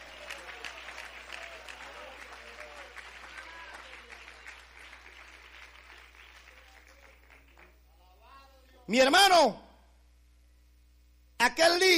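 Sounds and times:
applause for the pastor: 0.0s - 7.8s
speech: 8.9s - 9.6s, 11.5s - 11.9s.

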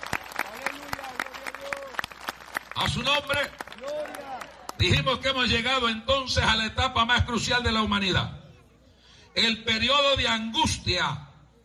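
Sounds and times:
audience applause: 0.0s - 4.8s
speech: 2.8s - 4.2s, 4.8s - 8.4s, 9.4s - 11.2s.

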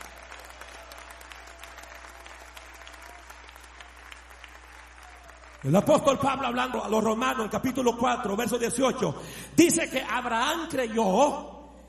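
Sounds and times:
audience applause: 0.0s - 6.6s
speech: 5.6s - 11.6s.

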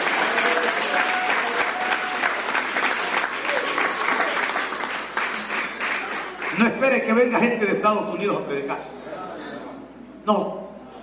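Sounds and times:
audience applause: 0.0s - 6.8s
speech: 6.9s - 9.0s, 10.3s - 11.0s.

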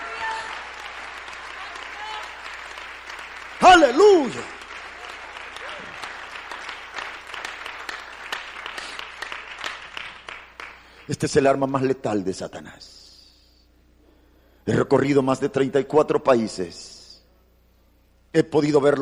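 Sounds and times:
audience applauding in praise: 0.0s - 11.1s
speech: 3.8s - 4.6s, 11.1s - 13.0s, 14.7s - 17.0s, 18.3s - 18.9s.

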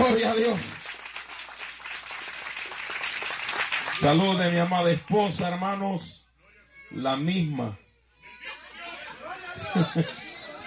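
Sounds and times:
church congregation applauding during a service: 0.0s - 5.0s
speech: 0.1s - 0.8s, 4.0s - 6.2s, 6.9s - 7.8s, 9.7s - 10.2s
laughter: 8.2s - 10.6s.

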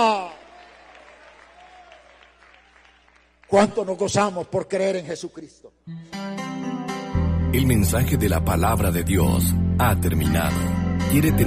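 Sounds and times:
church congregation applauding: 0.0s - 3.8s
speech: 3.5s - 6.4s, 7.5s - 11.4s.

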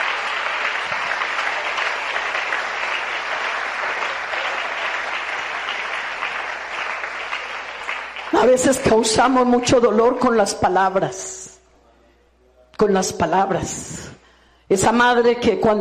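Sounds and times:
audience applause for God: 0.0s - 9.0s
speech: 8.4s - 11.4s, 12.8s - 14.1s, 14.7s - 15.7s.

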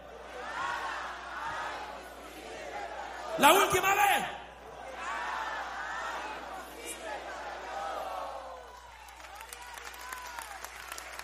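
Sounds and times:
crowd shouting in unison: 0.0s - 8.9s
speech: 3.4s - 4.4s.

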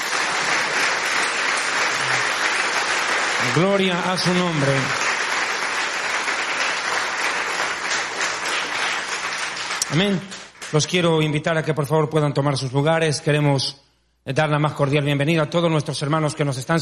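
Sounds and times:
audience applause: 0.0s - 10.8s
speech: 3.4s - 5.0s, 9.9s - 16.8s.

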